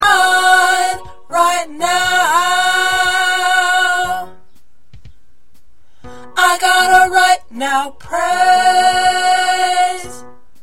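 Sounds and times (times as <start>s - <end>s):
tenor singing: 0.0s - 4.4s, 6.2s - 10.3s.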